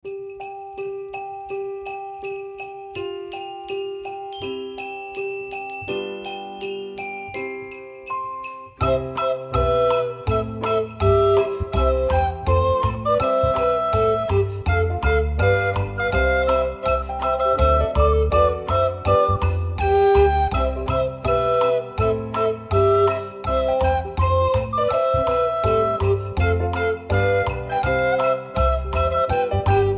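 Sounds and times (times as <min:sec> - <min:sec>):
Christmas song: 0:00.0 - 0:29.9.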